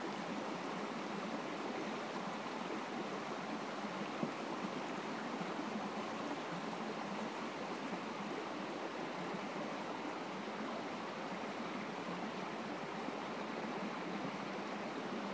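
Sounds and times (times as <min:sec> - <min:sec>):
clear mountain creek flowing in North Carolina: 0:00.0 - 0:15.3.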